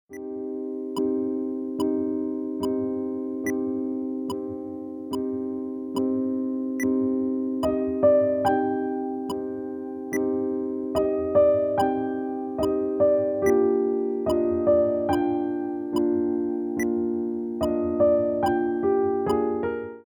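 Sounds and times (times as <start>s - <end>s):
piano: 0.1s - 20.0s.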